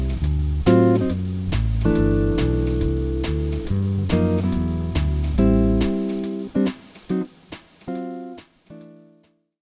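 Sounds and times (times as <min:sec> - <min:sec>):
walking bass: 0:00.0 - 0:07.5.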